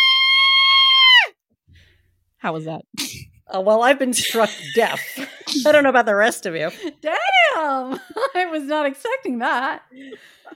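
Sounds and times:
person performing a hideous blood-curdling screech: 0:00.0 - 0:01.3
speech: 0:02.4 - 0:10.5.

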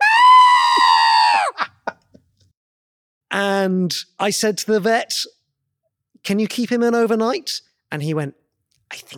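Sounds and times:
human voice imitating a pet rabbit's scream of pain: 0:00.0 - 0:01.9
speech: 0:03.6 - 0:05.4, 0:06.2 - 0:09.1.

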